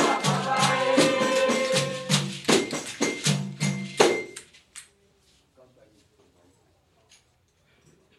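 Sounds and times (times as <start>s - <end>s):
children's baiao music: 0.0s - 4.4s.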